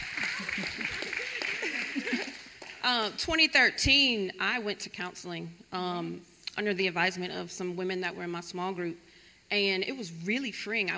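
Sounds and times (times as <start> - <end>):
laughter: 0.0 - 2.6
audience clapping: 0.0 - 2.9
speech: 2.8 - 10.9.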